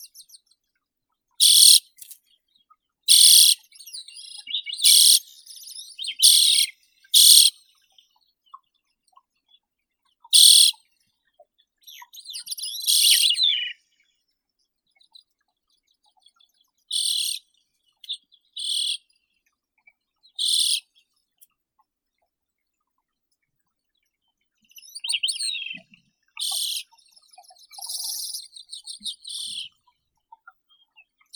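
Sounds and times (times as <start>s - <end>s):
Arctic redpoll Acanthis hornemanni calling: 1.4s - 1.9s, 3.1s - 5.3s, 6.0s - 7.6s, 10.3s - 10.8s, 12.4s - 13.7s, 16.9s - 17.4s, 18.6s - 19.0s, 20.4s - 20.8s, 25.0s - 29.7s.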